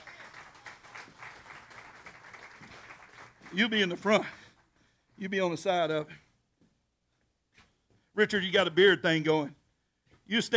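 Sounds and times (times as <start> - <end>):
audience applause: 0.0 - 4.5
speech: 3.5 - 4.4, 5.2 - 6.2, 8.2 - 9.6, 10.3 - 10.5.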